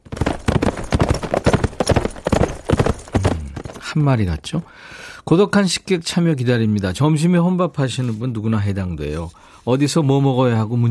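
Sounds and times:
horse hooves galloping: 0:00.0 - 0:04.6
speech: 0:04.0 - 0:10.8.

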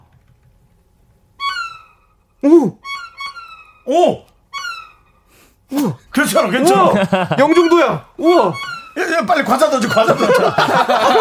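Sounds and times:
violin imitating a seagull call: 0:01.4 - 0:02.2, 0:02.8 - 0:05.2, 0:07.4 - 0:10.5
speech: 0:02.4 - 0:02.9, 0:03.9 - 0:04.3, 0:05.7 - 0:11.2
laughter: 0:06.2 - 0:08.0, 0:09.0 - 0:11.2.

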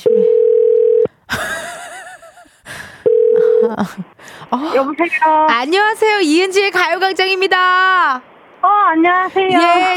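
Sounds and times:
telephone dial tone while a call is placed: 0:00.0 - 0:01.1, 0:03.1 - 0:03.7
speech: 0:03.8 - 0:09.9.

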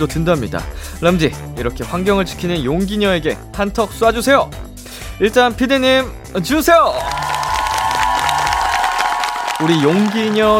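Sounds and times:
speech: 0:00.0 - 0:07.3, 0:09.6 - 0:10.5
crowd cheering and clapping: 0:06.9 - 0:10.5.

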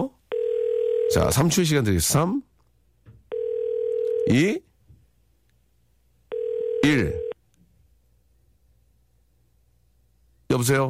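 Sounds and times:
outgoing telephone call ringing: 0:00.3 - 0:01.3, 0:03.3 - 0:04.4, 0:06.3 - 0:07.4
speech: 0:01.1 - 0:02.5, 0:04.2 - 0:04.7, 0:10.5 - 0:10.8.

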